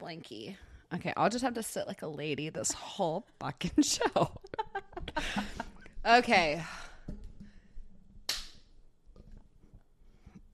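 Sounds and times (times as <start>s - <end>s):
speech: 0.1s - 4.5s, 5.2s - 6.8s
laughter: 4.0s - 5.8s
hand clap: 8.3s - 8.6s.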